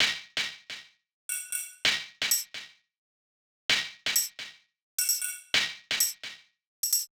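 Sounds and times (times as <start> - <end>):
lounge house percussion loop: 1.3 - 2.5, 4.1 - 4.4, 5.0 - 7.1.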